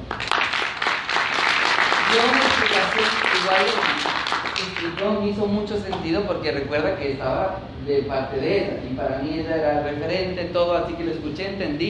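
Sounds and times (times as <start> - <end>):
audience applause: 0.0 - 5.1
speech: 2.1 - 11.8.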